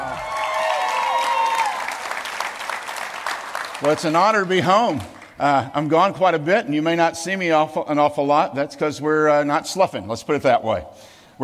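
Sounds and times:
audience applause and cheering: 0.0s - 5.4s
speech: 3.8s - 11.4s.

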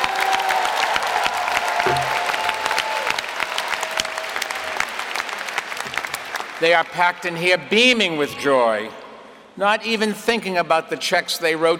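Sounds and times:
cheering: 0.0s - 6.8s
applause: 0.0s - 7.4s
speech: 6.6s - 9.0s, 9.6s - 11.7s.

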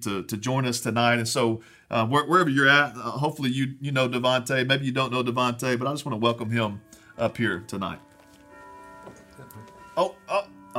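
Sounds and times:
speech: 0.0s - 8.1s, 10.0s - 10.7s
church bells ringing: 6.1s - 10.7s.

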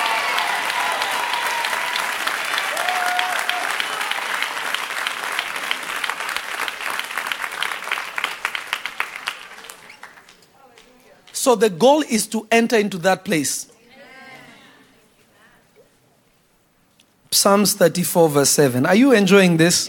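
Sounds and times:
congregation clapping during a church sermon: 0.0s - 11.5s
speech: 11.5s - 13.7s, 17.4s - 19.8s.

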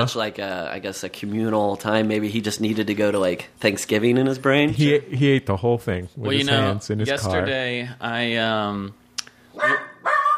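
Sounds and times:
speech: 0.0s - 9.0s
dog barking after coming back from a walk: 9.6s - 10.3s.

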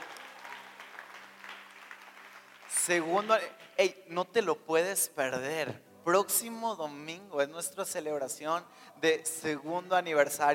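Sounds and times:
audience applause: 0.0s - 3.8s
speech: 2.9s - 10.5s.

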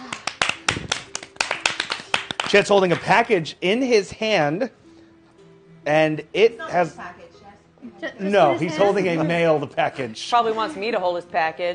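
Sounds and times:
applause: 0.0s - 3.1s
speech: 2.5s - 4.8s, 5.8s - 7.2s, 7.8s - 11.7s.

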